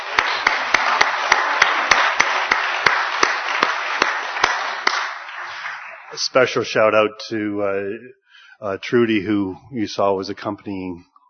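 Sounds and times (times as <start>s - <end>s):
applause: 0.0s - 6.5s
speech: 6.2s - 11.1s.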